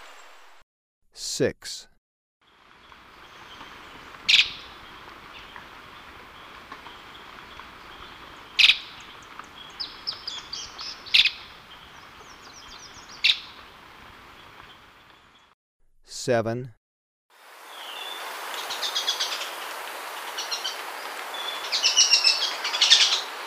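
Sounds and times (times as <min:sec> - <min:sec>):
speech: 0:01.2 - 0:01.9, 0:16.2 - 0:16.8
birds twittering: 0:02.5 - 0:15.5, 0:17.7 - 0:23.4
streak-capped treehunter harsh calls: 0:02.5 - 0:15.5, 0:17.6 - 0:23.4.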